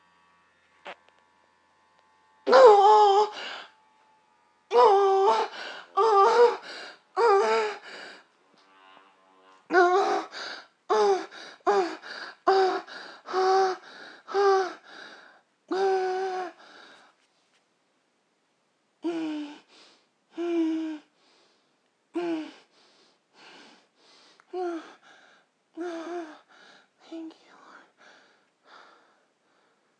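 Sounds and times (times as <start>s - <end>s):
person moaning: 2.5s - 3.7s, 4.7s - 8.2s, 9.7s - 15.0s, 15.7s - 16.6s, 19.0s - 19.7s, 20.3s - 21.1s, 22.2s - 22.7s, 24.5s - 25.0s, 25.8s - 26.5s.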